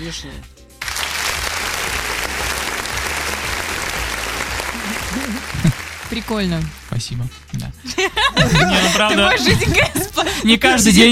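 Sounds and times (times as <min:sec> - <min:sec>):
speech: 0:00.0 - 0:00.6, 0:04.8 - 0:11.1
applause: 0:00.8 - 0:07.3
laughter: 0:02.0 - 0:06.0, 0:07.8 - 0:10.4.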